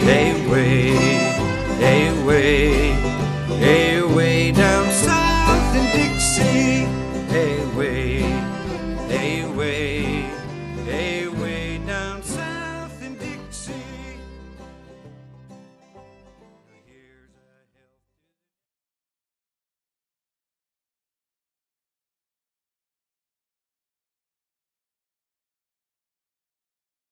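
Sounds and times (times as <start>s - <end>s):
dixieland jazz: 0.0s - 15.0s.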